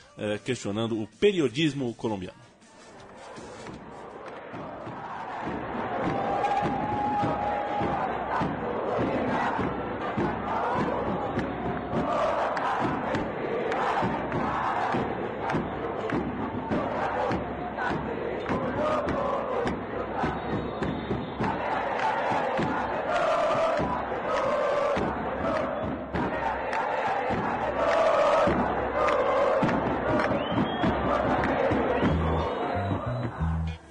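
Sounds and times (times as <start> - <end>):
speech: 0.2 - 2.5
football supporters chanting in protest: 2.7 - 33.7.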